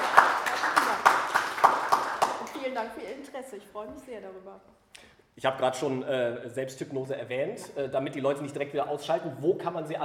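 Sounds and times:
audience applause: 0.0s - 2.8s
speech: 2.8s - 10.0s.

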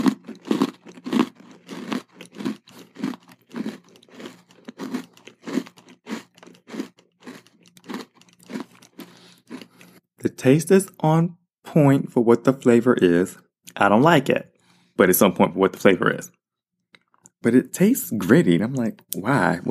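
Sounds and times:
biting and chewing a crunchy snack combining two classic flavors: 0.0s - 10.0s
speech: 10.3s - 16.4s, 17.4s - 19.6s.

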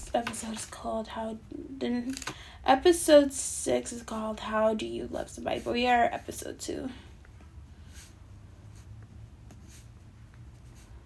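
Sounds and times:
speech: 0.1s - 7.1s
pen writing at a small desk: 7.9s - 11.0s.

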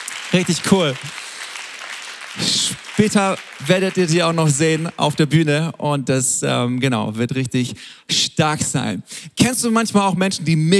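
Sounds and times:
audience applause: 0.0s - 5.4s
speech: 0.3s - 1.2s, 2.4s - 10.7s.

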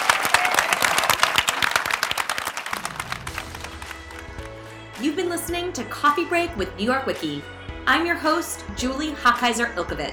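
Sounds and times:
audience applause for panelists: 0.0s - 4.8s
low tone: 2.8s - 4.7s
speech: 5.0s - 10.1s.

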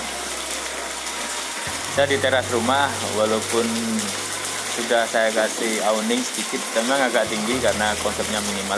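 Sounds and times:
light rain falling by a house terrace: 0.0s - 8.7s
speech: 2.0s - 4.2s, 4.8s - 8.7s.

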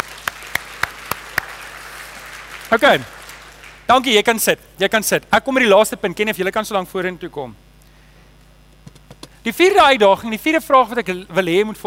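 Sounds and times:
audience clapping hands: 0.0s - 4.3s
speech: 2.7s - 3.2s, 3.9s - 7.6s, 9.4s - 11.8s.

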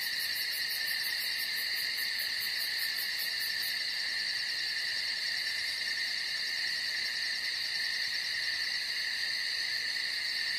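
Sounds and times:
night chorus of crickets and insects trilling: 0.0s - 10.5s.

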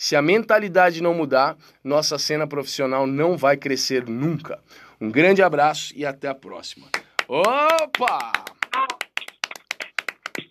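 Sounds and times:
speech: 0.0s - 8.5s
Spanish-style palmas hand clapping: 6.9s - 10.4s.

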